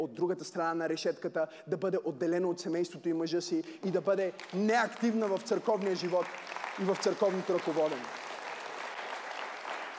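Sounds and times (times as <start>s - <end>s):
speech: 0.0s - 8.3s
audience applause: 4.4s - 9.9s.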